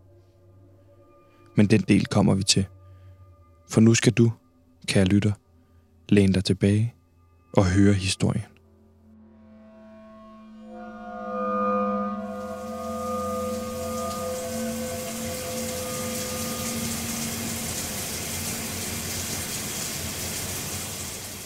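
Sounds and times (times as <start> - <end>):
speech: 1.6 - 2.8, 3.7 - 5.4, 6.1 - 8.5
shower running water: 12.2 - 21.4.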